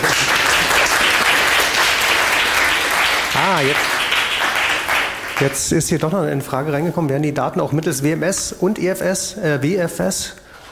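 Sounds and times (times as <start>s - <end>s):
audience applause: 0.0s - 5.7s
speech: 3.5s - 3.9s, 5.4s - 10.4s.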